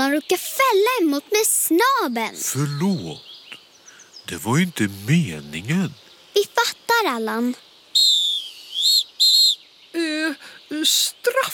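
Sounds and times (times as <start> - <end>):
speech: 0.0 - 3.3, 4.3 - 7.7, 10.0 - 11.5
referee whistle blown for a penalty: 8.0 - 9.6.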